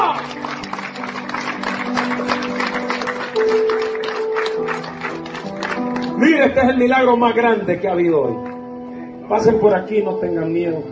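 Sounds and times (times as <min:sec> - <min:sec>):
audience applauding: 0:00.0 - 0:06.2
speech: 0:06.4 - 0:08.5, 0:09.3 - 0:10.9.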